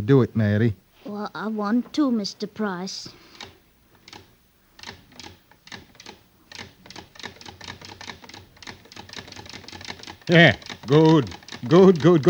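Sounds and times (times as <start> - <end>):
speech: 0.0 - 3.3, 10.3 - 12.2
sewing machine stitching a single-thread chain: 3.4 - 12.2.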